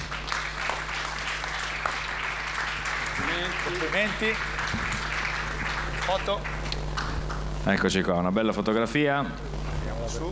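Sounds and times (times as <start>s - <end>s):
crowd clapping: 0.0s - 7.6s
speech: 3.4s - 4.9s, 6.1s - 6.6s, 7.6s - 9.5s, 10.1s - 10.3s.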